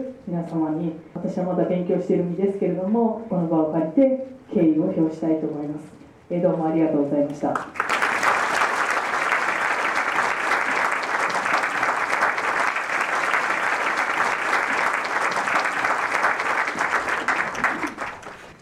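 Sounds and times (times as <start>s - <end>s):
speech: 0.0s - 7.8s
audience applause: 7.7s - 18.5s.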